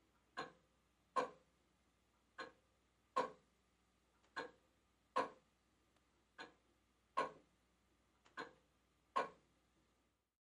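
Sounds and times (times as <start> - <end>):
antique grandfather clock ticking across room: 0.0 - 1.5, 2.2 - 3.5, 4.2 - 5.5, 6.3 - 7.5, 8.2 - 9.5.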